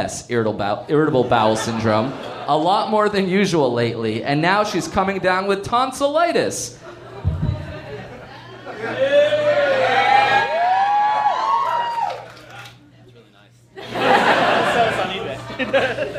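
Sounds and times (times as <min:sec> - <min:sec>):
speech: 0:00.0 - 0:06.8, 0:08.8 - 0:10.1, 0:15.6 - 0:16.1
laughter: 0:01.1 - 0:03.2, 0:06.7 - 0:10.5, 0:13.8 - 0:16.1
audience cheering: 0:07.6 - 0:12.8.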